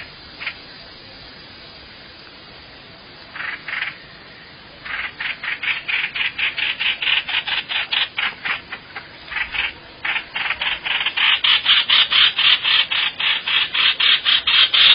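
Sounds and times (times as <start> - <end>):
quiet hiss: 0.0 - 14.9
bird harsh buzzy calls: 3.3 - 4.2, 4.8 - 14.9.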